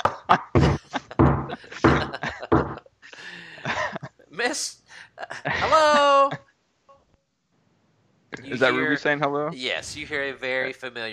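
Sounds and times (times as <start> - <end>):
laughter: 0.0 - 4.2, 5.1 - 6.4
speech: 0.3 - 0.7, 8.6 - 11.1
heavy hollow knocking on a door: 0.6 - 2.8.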